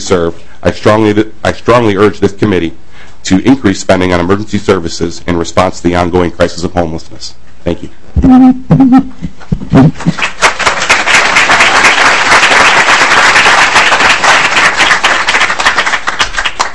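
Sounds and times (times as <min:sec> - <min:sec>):
speech: 0:00.1 - 0:10.6
audience applause: 0:10.0 - 0:16.7.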